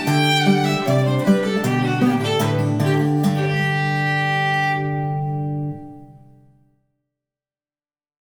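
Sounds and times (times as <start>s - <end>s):
guitar playing a fiddle tune: 0.0s - 6.6s.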